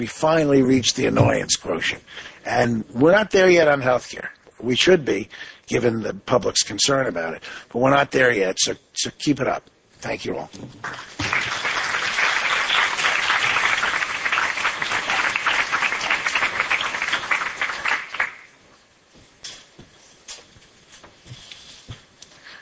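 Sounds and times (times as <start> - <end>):
speech: 0.0 - 11.2
crowd applauding: 10.8 - 18.6.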